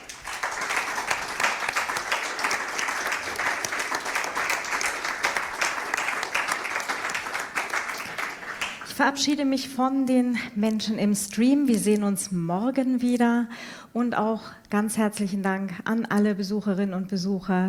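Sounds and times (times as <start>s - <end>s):
audience applause: 0.0s - 8.9s
speech: 9.0s - 17.6s.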